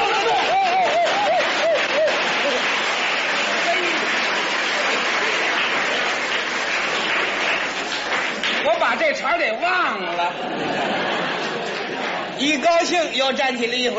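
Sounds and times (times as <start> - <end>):
rising wavering shouts: 0.0 - 1.8
laughter: 0.0 - 3.7, 10.0 - 12.7
audience cheering and applauding at table tennis match: 0.0 - 9.1
speech: 9.0 - 11.2, 12.4 - 13.9.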